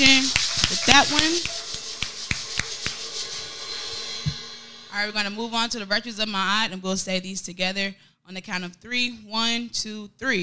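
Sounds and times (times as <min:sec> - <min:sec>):
speech: 0:00.0 - 0:01.6, 0:05.0 - 0:10.4
group hand clap: 0:00.0 - 0:03.3.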